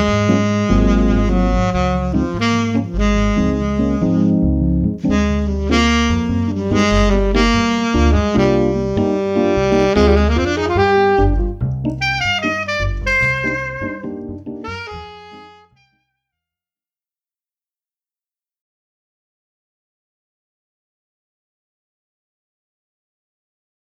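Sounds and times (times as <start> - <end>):
jazz on keyboard and saxophone: 0.0 - 16.0.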